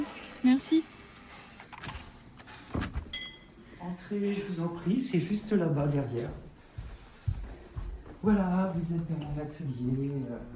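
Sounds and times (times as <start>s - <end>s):
speech: 0.4s - 1.0s, 4.1s - 6.4s, 8.2s - 10.5s
workshop door opening: 1.5s - 3.3s.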